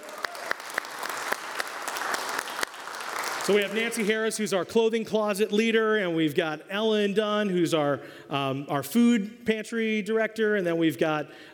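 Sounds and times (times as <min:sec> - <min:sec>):
audience applause: 0:00.0 - 0:04.8
speech: 0:03.4 - 0:11.5.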